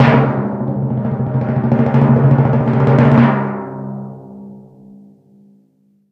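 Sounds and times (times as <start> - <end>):
timpani stinger: 0.0 - 5.1.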